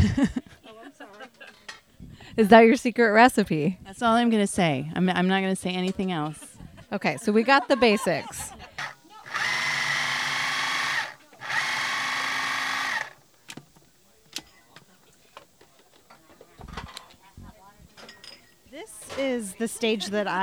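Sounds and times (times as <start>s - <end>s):
speech: 0.0s - 0.6s, 2.4s - 8.6s, 19.2s - 20.4s
laughter: 0.0s - 1.8s, 6.5s - 12.6s
food processor chopping heirloom tomatoes: 8.8s - 13.8s.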